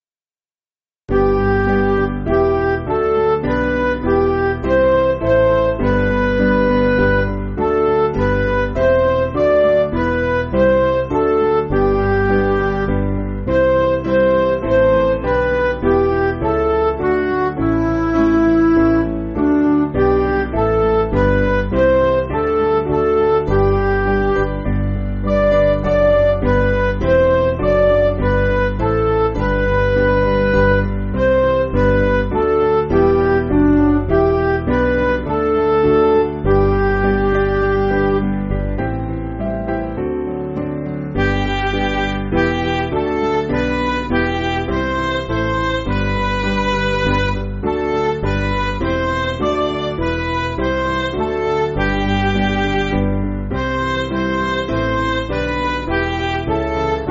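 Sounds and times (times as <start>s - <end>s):
MIDI music: 1.1s - 57.0s.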